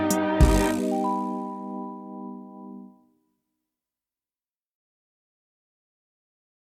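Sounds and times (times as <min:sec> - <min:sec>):
theremin whistle notes: 0:00.2 - 0:02.8.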